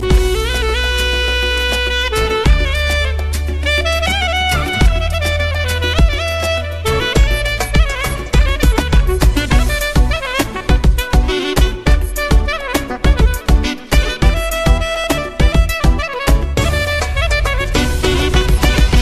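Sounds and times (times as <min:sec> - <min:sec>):
oriental-style music: 0:00.0 - 0:18.9.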